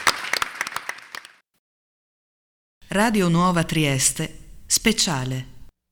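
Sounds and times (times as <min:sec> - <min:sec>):
audience applause: 0:00.0 - 0:01.4
speech: 0:02.9 - 0:05.5.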